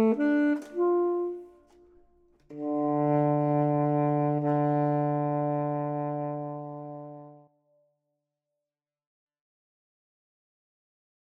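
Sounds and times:
clarinet: 0:00.0 - 0:07.5
saxophone: 0:00.0 - 0:07.5.

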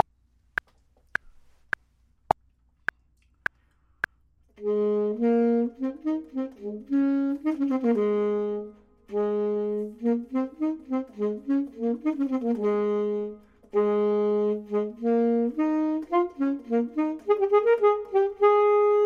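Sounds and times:
clarinet: 0:04.6 - 0:19.0
saxophone: 0:04.6 - 0:19.0.

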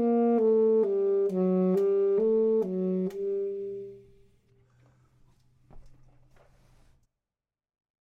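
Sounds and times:
saxophone: 0:00.0 - 0:04.3
clarinet: 0:00.0 - 0:04.4.

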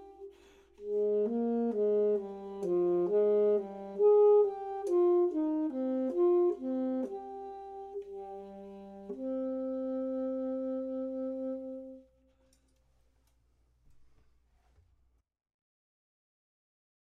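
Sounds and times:
clarinet: 0:00.0 - 0:12.6
saxophone: 0:00.0 - 0:12.6.

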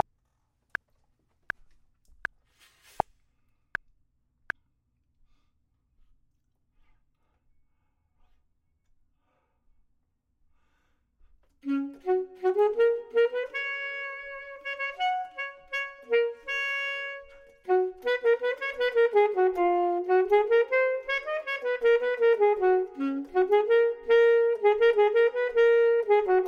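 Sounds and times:
clarinet: 0:11.6 - 0:26.4
saxophone: 0:11.6 - 0:26.4.

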